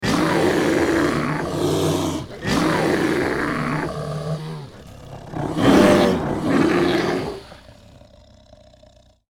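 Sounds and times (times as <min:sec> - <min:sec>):
bear roar: 0:00.0 - 0:09.2.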